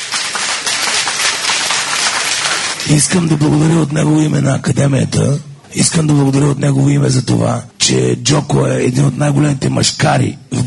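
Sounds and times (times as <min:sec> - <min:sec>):
audience applause for an actor at a theatre academy event: 0:00.0 - 0:03.4
speech: 0:02.9 - 0:10.6.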